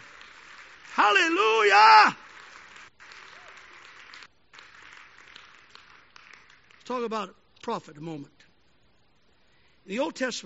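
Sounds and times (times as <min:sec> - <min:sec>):
audience clapping hands: 0:00.0 - 0:07.3
speech: 0:01.0 - 0:02.2, 0:06.9 - 0:08.4, 0:09.8 - 0:10.4.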